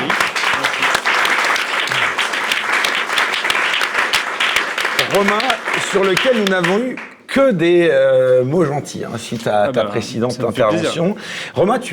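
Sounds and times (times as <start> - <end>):
audience applause: 0.0 - 7.2
speech: 5.2 - 11.9.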